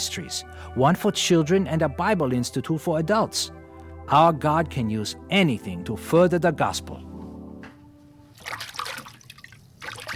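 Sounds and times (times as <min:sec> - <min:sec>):
speech: 0:00.1 - 0:07.1
water sloshing and splashing as baby's clothes are washed by hand: 0:08.3 - 0:10.1.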